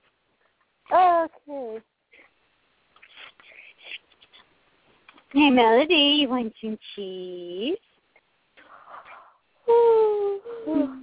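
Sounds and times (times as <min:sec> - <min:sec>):
speech: 0:00.9 - 0:01.9, 0:05.4 - 0:07.9, 0:10.6 - 0:11.0
person yawning: 0:09.7 - 0:11.0.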